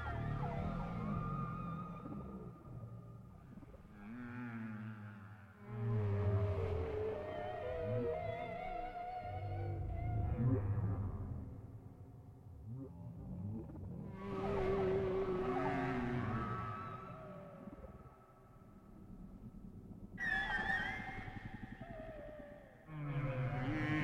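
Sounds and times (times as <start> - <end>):
whale song: 0.0 - 24.0.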